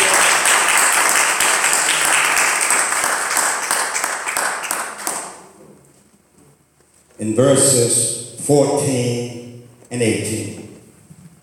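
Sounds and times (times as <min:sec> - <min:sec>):
audience hand clapping: 0:00.0 - 0:05.5
speech: 0:07.2 - 0:10.6.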